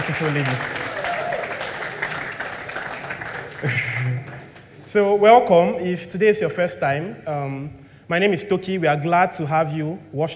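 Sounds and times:
church congregation applauding at a morning service: 0.0s - 4.8s
speech: 0.1s - 0.8s, 3.6s - 4.3s, 4.9s - 10.3s.

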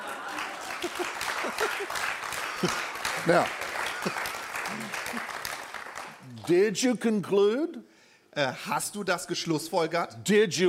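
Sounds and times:
laughter: 0.0s - 3.0s, 3.8s - 5.3s
audience clapping: 0.0s - 6.7s
speech: 0.8s - 5.4s, 6.4s - 10.6s.

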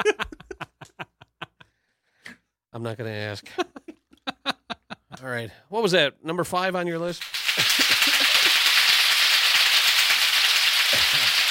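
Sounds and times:
laughter: 0.0s - 1.7s, 3.4s - 5.2s, 7.4s - 8.8s, 10.9s - 11.4s
speech: 2.8s - 3.7s, 5.2s - 7.4s
egg frying in a frying pan: 7.2s - 11.4s.

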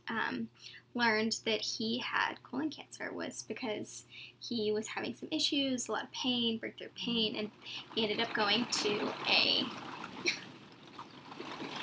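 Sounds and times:
speech: 0.1s - 10.4s
rain dripping in the studio: 7.2s - 11.8s.

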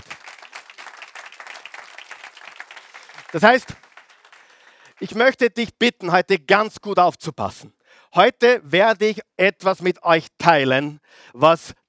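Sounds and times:
audience applause: 0.0s - 5.2s
speech: 3.3s - 3.8s, 5.0s - 11.8s.

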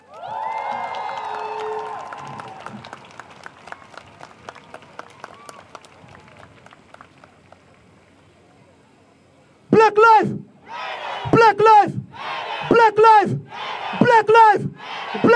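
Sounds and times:
audience applause: 0.0s - 8.2s
speech: 10.0s - 10.4s, 11.3s - 12.0s, 12.8s - 13.4s, 14.1s - 15.3s.

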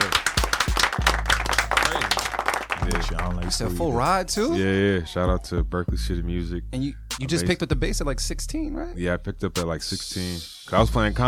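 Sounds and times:
hands clapping: 0.0s - 4.6s
speech: 3.2s - 11.2s.

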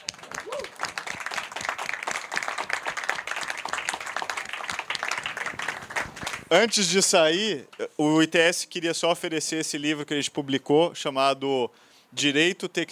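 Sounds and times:
audience applause: 0.0s - 6.5s
speech: 6.5s - 12.8s.

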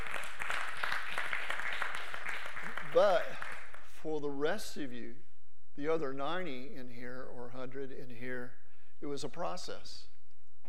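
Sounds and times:
audience applause: 0.0s - 3.8s
speech: 2.9s - 3.4s, 4.0s - 10.1s.

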